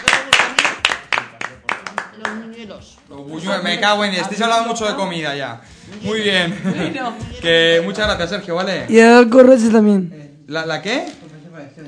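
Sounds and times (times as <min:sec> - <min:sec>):
audience applause: 0:00.0 - 0:02.4
speech: 0:02.2 - 0:11.8.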